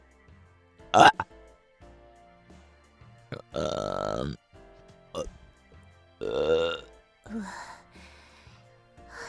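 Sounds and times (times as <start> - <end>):
person burping: 1.0 - 1.2, 3.3 - 4.4, 6.2 - 6.9.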